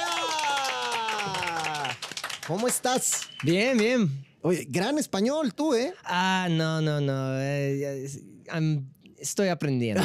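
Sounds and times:
laughter: 0.0s - 2.0s
applause: 0.0s - 4.1s
speech: 2.5s - 10.0s.

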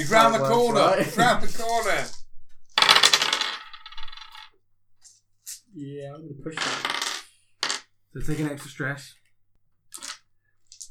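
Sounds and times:
laughter: 0.0s - 2.2s
speech: 0.0s - 2.2s, 5.8s - 7.1s, 8.2s - 9.2s
handful of dice clattering across a hard tabletop: 2.7s - 4.6s, 6.6s - 7.9s, 10.0s - 10.8s.

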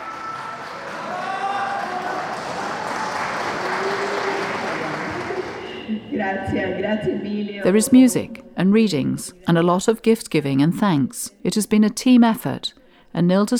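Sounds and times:
crowd cheering: 0.0s - 6.0s
speech: 6.2s - 13.5s.

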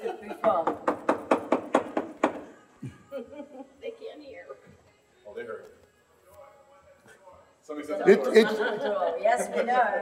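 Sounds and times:
laughter: 0.0s - 0.6s, 2.8s - 3.8s, 8.0s - 10.0s
knocking on a door: 0.5s - 2.5s
speech: 8.1s - 10.0s.

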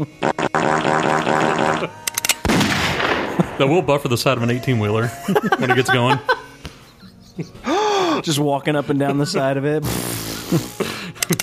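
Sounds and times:
speech: 0.0s - 0.5s, 1.8s - 2.0s, 3.6s - 6.4s, 7.4s - 7.6s, 8.2s - 10.9s
gunshots: 0.4s - 4.2s
laughter: 3.3s - 11.4s.

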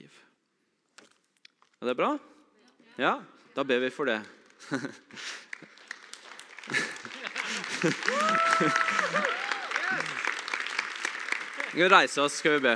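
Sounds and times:
speech: 1.8s - 2.3s, 3.0s - 5.3s, 7.8s - 10.1s, 11.7s - 12.7s
audience clapping: 4.1s - 12.7s
laughter: 4.6s - 5.4s, 6.6s - 10.3s.

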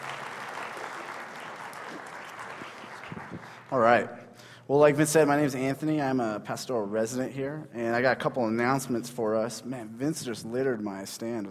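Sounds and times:
audience clapping: 0.0s - 4.0s
speech: 3.7s - 11.4s.

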